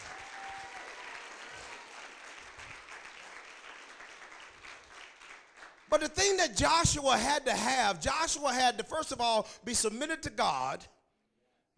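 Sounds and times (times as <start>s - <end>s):
audience hand clapping: 0.0s - 6.4s
speech: 5.9s - 11.0s.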